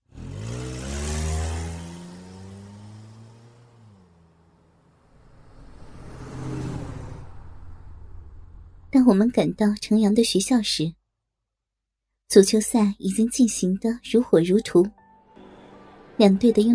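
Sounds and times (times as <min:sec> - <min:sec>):
car engine starting, revving and accelerating away from a parking lot: 0:00.0 - 0:08.9
speech: 0:08.9 - 0:11.0, 0:12.3 - 0:15.0, 0:16.2 - 0:16.7.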